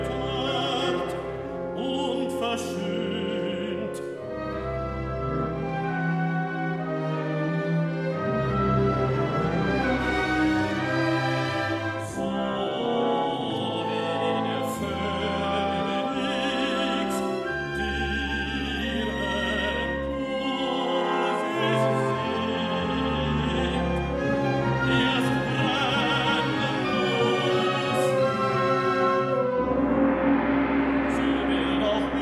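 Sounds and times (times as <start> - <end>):
baritone singing: 0.0 - 4.8, 12.0 - 30.1, 30.9 - 32.2
large orchestra playing: 0.0 - 32.2.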